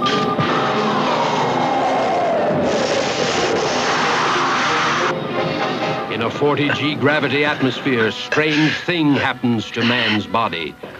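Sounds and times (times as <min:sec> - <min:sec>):
aircraft engine roar as a plane comes in to land: 0:00.0 - 0:07.9
speech: 0:06.4 - 0:10.9.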